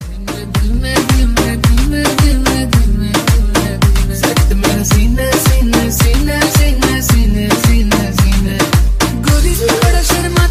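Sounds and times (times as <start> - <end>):
new Hindi ringtone: 0.0 - 10.5.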